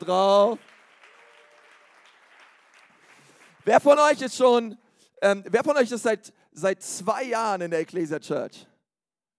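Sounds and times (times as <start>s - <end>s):
speech: 0.0s - 0.7s, 3.6s - 8.7s
audience applause: 0.0s - 4.2s.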